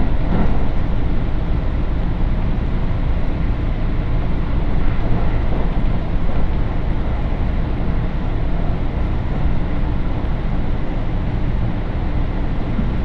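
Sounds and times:
Tokaido Main Line train running rumble: 0.0 - 13.0.

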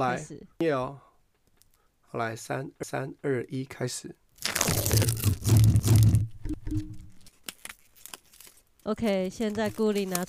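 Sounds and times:
speech: 0.0 - 1.1, 2.1 - 6.0, 8.8 - 10.2
packaging crinkling and tearing open for an ASMR demonstration: 4.4 - 6.2, 7.2 - 10.2.

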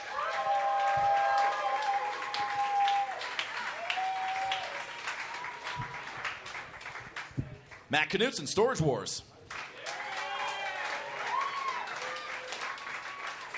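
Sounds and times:
cheers and whistles: 0.0 - 6.1, 9.8 - 13.5
audience applause: 0.0 - 7.9, 9.5 - 13.5
speech: 7.9 - 9.3.

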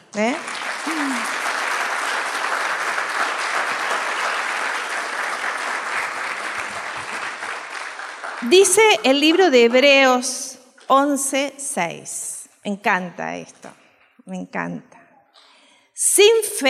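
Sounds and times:
speech: 0.2 - 0.5, 8.5 - 13.6, 14.3 - 15.0, 16.0 - 16.6
audience applause: 0.2 - 9.3.

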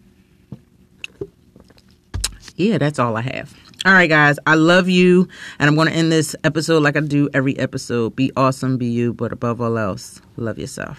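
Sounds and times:
person sipping a drink: 1.0 - 2.5
speech: 2.6 - 10.9.

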